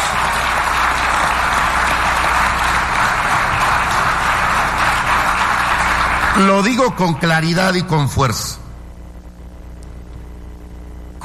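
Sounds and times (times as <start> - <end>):
audience applause: 0.0 - 7.6
speech: 6.4 - 8.6.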